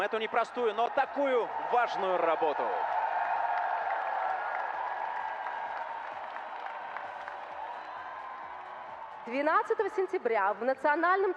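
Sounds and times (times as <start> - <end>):
speech: 0.0 - 3.0, 9.3 - 11.3
song contest audience applauding the jury: 0.0 - 10.2
crowd noise: 0.0 - 11.3.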